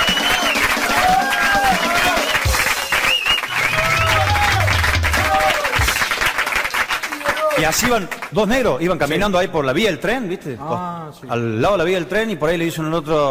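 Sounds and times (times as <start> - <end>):
audience applause: 0.0 - 8.2
speech: 7.6 - 13.2.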